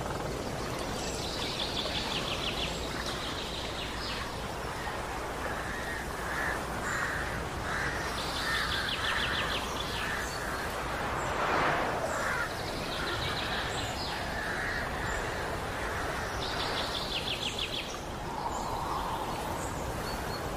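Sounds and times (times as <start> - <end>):
steady dense background hiss: 0.1 - 20.5
harsh rapidly pulsed bird calls: 5.8 - 17.9.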